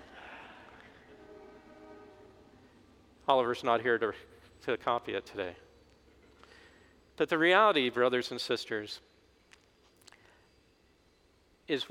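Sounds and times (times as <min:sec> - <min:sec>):
passing train horn: 0:00.9 - 0:02.8
speech: 0:03.3 - 0:05.6, 0:07.2 - 0:09.1, 0:11.7 - 0:11.8.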